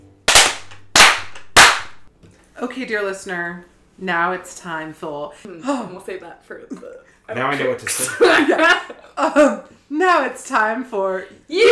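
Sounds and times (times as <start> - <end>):
hand claps: 0.3 - 2.1
speech: 2.6 - 11.7.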